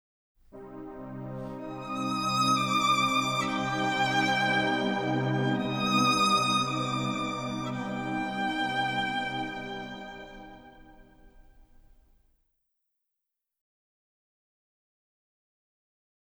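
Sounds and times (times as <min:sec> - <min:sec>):
sad game over music: 0:00.6 - 0:10.7.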